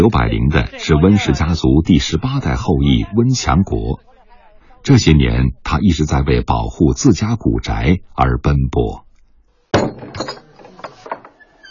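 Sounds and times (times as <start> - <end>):
speech: 0.0 - 4.1, 4.8 - 9.0
heavy wooden door creaking: 10.1 - 11.7.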